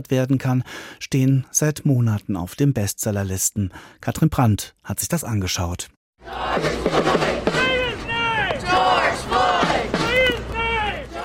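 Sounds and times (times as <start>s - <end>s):
speech: 0.0s - 7.2s
protest crowd chanting: 6.2s - 11.2s.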